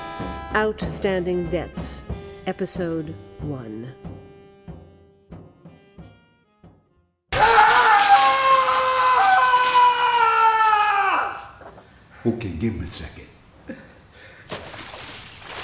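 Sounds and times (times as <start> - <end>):
speech: 0.5 - 4.1, 12.2 - 13.3
man screaming: 7.3 - 11.6.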